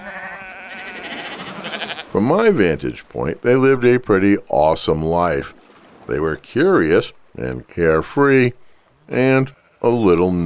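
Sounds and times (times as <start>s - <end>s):
sheep bleating: 0.0s - 2.2s, 8.9s - 10.4s
speech: 2.2s - 10.4s.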